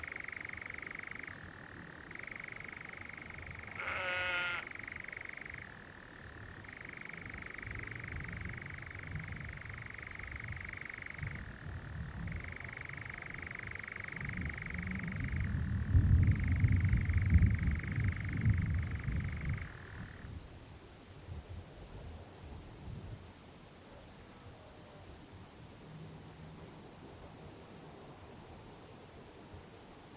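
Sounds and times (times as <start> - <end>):
nightjar churring on a summer night in the Brecon Beacons: 0.0 - 20.3.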